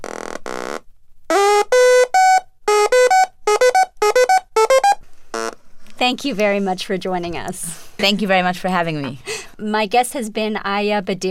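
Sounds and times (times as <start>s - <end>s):
buzzy electronic synthesizer playing a sequenced pattern: 0.0s - 5.6s
speech: 6.1s - 11.2s.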